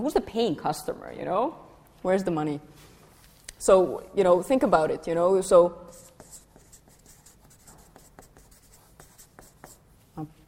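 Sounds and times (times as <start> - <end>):
speech: 0.0 - 2.9, 3.6 - 6.0, 10.2 - 10.4
pen scratching on paper drawing a dollar sign: 5.9 - 9.8.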